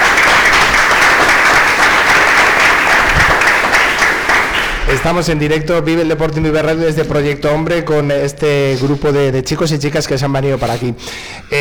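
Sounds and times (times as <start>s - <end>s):
audience applause: 0.0s - 5.2s
speech: 4.9s - 11.6s.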